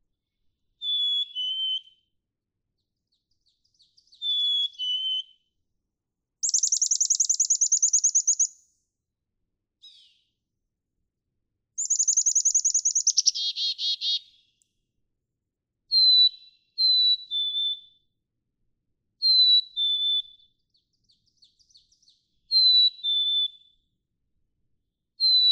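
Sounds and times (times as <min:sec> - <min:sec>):
black-capped chickadee whistling two-note song: 0:00.8 - 0:02.0, 0:04.1 - 0:05.4, 0:06.4 - 0:08.6, 0:11.8 - 0:14.3, 0:16.0 - 0:18.0, 0:19.2 - 0:20.5, 0:22.5 - 0:23.7, 0:25.2 - 0:25.5.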